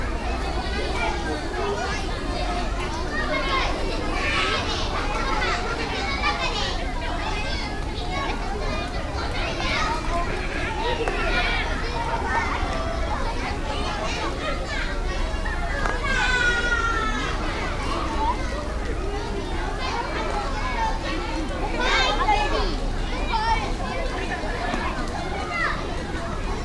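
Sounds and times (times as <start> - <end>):
many young kids: 0.0 - 26.6.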